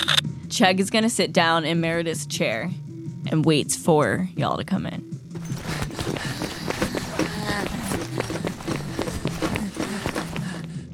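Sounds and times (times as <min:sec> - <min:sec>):
speech: 0:00.6 - 0:05.8
footsteps approaching an office door: 0:05.4 - 0:10.7.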